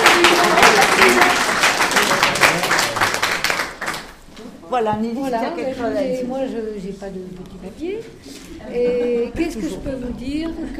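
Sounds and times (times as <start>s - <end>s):
audience applause: 0.0s - 4.2s
speech: 4.8s - 10.7s.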